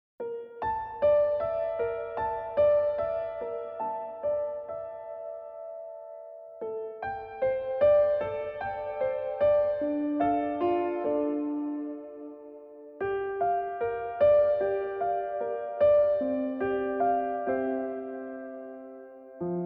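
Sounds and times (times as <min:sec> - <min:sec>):
solo piano: 0:00.2 - 0:19.6.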